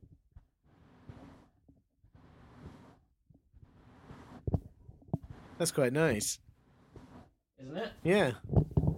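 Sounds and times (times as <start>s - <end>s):
cat being gently brushed: 0.6s - 4.6s, 5.2s - 7.4s
speech: 5.6s - 6.4s, 7.8s - 8.6s.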